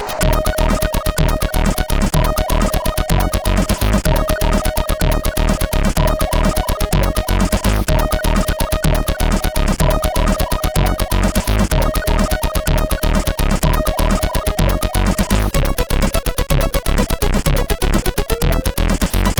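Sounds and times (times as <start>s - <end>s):
acidstyle synth on SID CSG8580R5 chip: 0.2s - 19.3s.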